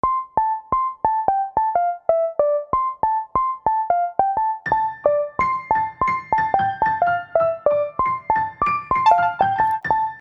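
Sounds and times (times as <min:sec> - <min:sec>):
cheerful keyboard music: 0:00.0 - 0:10.1.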